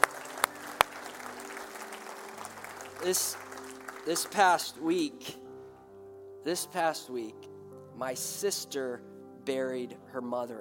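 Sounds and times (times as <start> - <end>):
audience applause: 0.0 - 4.7
speech: 3.0 - 3.4, 4.0 - 5.4, 6.4 - 10.6.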